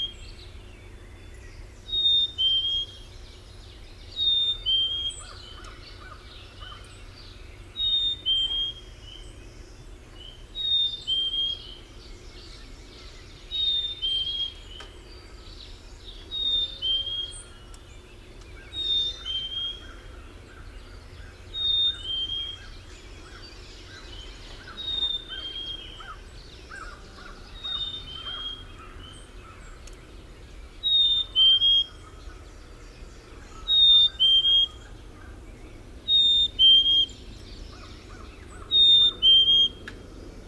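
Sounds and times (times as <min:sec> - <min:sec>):
Black-capped Chickadee whistled song: 0:01.9 - 0:03.0, 0:04.1 - 0:05.3, 0:07.8 - 0:08.9, 0:10.6 - 0:11.8, 0:13.5 - 0:14.9, 0:16.3 - 0:17.5, 0:18.7 - 0:20.0, 0:21.6 - 0:22.7, 0:24.7 - 0:26.1, 0:30.8 - 0:32.1, 0:33.6 - 0:34.9, 0:36.0 - 0:37.3, 0:38.6 - 0:40.0.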